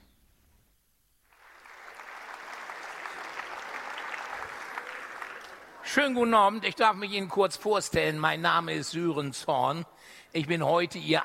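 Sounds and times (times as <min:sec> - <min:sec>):
audience applause at comedy show: 0:01.3 - 0:06.2
speech: 0:05.9 - 0:11.2.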